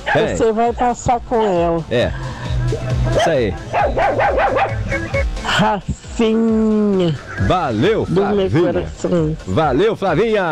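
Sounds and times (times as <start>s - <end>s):
dog barking: 0.0s - 5.6s
laughter: 0.0s - 10.4s
speech: 0.1s - 10.5s.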